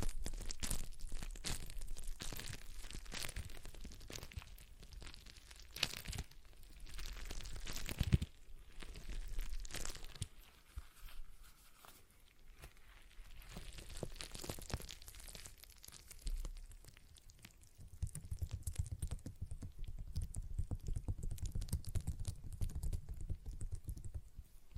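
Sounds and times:
stress ball squeezed by hand, crinkling and crunching: 0.0s - 24.7s.

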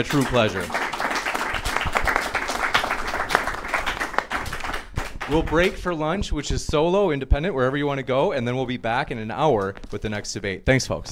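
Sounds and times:
speech: 0.0s - 0.8s, 5.3s - 11.1s
audience round of applause: 0.0s - 5.8s.

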